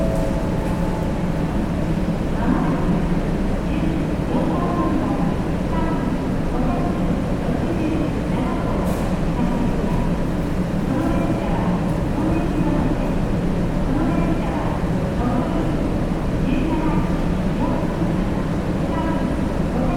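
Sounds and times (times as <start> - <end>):
bullet trains at a transfer station: 0.0 - 19.9.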